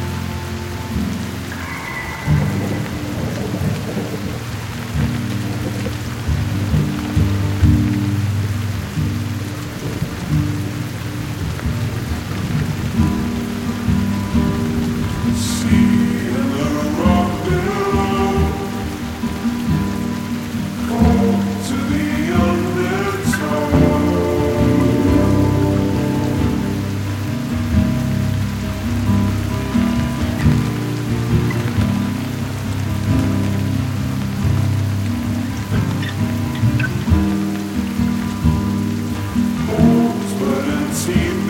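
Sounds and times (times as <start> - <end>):
rain falling: 0.0 - 41.4
constant low hum: 13.9 - 28.9.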